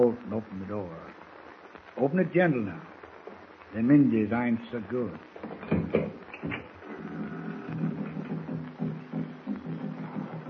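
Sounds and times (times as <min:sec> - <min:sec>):
speech: 0:00.0 - 0:01.2, 0:02.0 - 0:02.9, 0:03.7 - 0:05.6
faint hiss: 0:00.0 - 0:10.4
distant tom-tom drums beating: 0:05.3 - 0:10.4.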